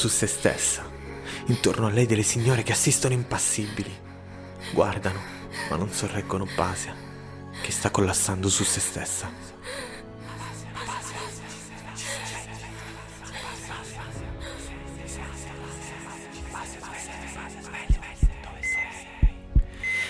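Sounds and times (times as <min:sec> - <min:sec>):
speech: 0:00.0 - 0:09.9
heartbeat thumps on a cardiac monitor: 0:17.8 - 0:19.8.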